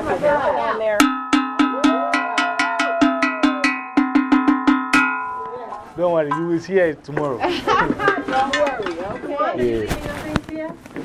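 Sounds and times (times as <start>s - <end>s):
speech: 0.1s - 1.2s, 6.0s - 11.0s
small bell being struck: 1.0s - 6.5s
laughter: 7.4s - 8.6s.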